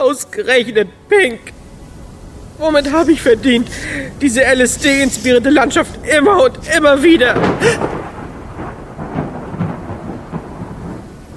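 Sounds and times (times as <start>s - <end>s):
speech: 0.1s - 1.6s, 2.6s - 8.0s
thunder: 2.6s - 11.3s.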